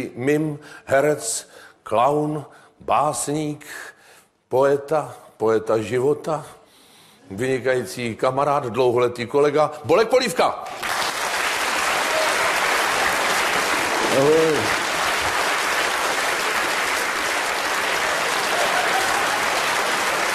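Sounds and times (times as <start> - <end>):
speech: 0.0 - 3.9, 4.5 - 6.6, 7.3 - 11.0, 14.2 - 14.7
audience applause: 10.7 - 20.3.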